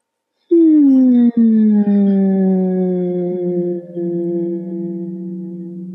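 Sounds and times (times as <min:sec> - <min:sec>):
group humming a gentle hum: 0:00.5 - 0:05.9.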